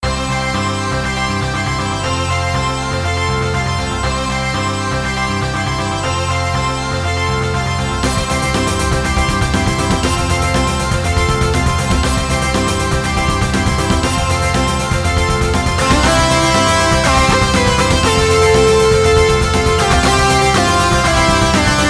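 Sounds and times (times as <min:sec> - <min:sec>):
rock music: 0:00.0 - 0:21.8.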